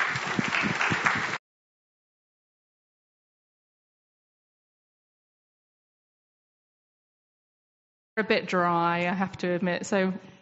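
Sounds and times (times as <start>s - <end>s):
audience applause: 0.0s - 1.4s
speech: 8.2s - 10.3s.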